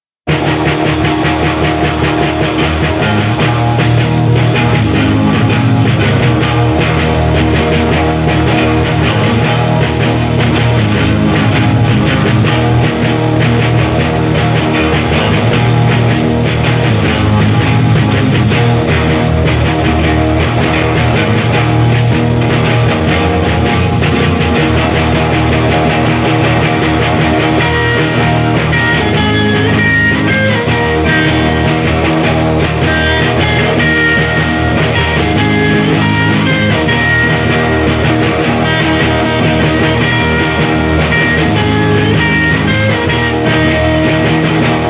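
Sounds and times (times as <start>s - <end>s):
thundering guitar: 0.2s - 44.8s.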